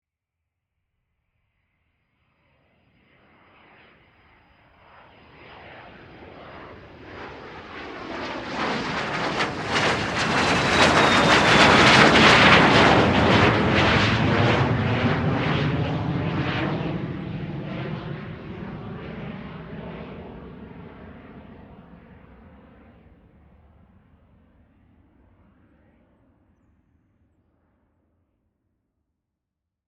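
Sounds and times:
private jet passing overhead: 3.3s - 23.2s.

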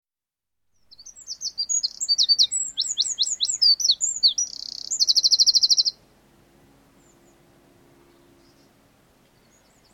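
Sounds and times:
wren singing: 0.8s - 6.0s, 8.0s - 9.9s.

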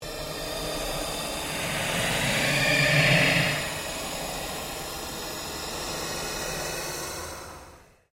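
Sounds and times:
ambient pulse: 0.4s - 4.9s
ghostly chatter: 1.0s - 4.6s.

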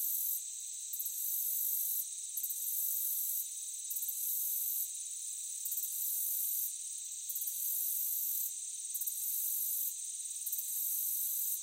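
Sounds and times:
crickets chorus in a meadow: 0.0s - 11.6s.

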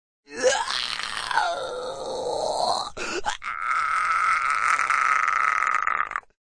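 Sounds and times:
man groaning in pain: 0.3s - 6.3s.

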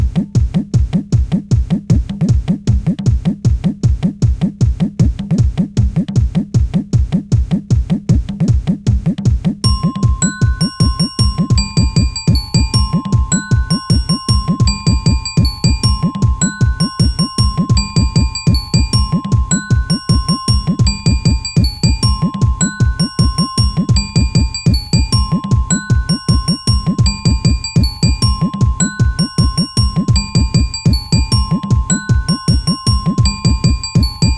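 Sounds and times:
quirky tabla beat: 0.0s - 34.3s
bells melody: 9.6s - 34.3s.

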